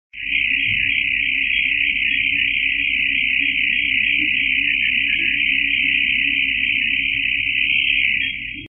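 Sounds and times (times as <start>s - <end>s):
disturbed DCF radio time signal: 0.2s - 8.6s.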